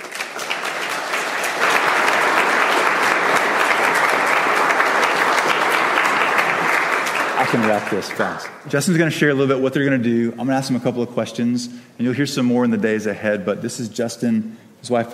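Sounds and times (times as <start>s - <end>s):
audience applause welcoming a speaker: 0.0s - 8.6s
speech: 7.4s - 15.1s.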